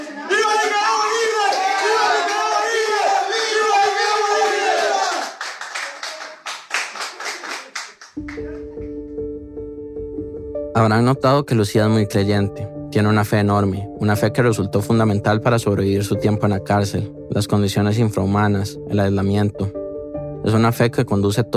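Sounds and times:
group of freed prisoners shouting: 0.0s - 5.4s
scattered rhythmic clapping: 1.4s - 9.0s
speech: 10.8s - 19.8s, 20.4s - 21.5s.

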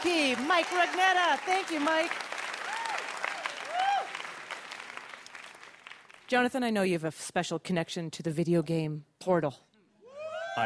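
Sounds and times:
speech: 0.0s - 2.3s, 6.3s - 9.7s
audience applause: 0.0s - 6.3s.

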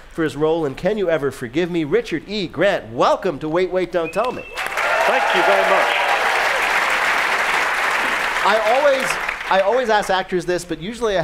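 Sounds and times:
speech: 0.2s - 6.0s, 8.4s - 11.2s
audience applause: 4.6s - 10.2s.

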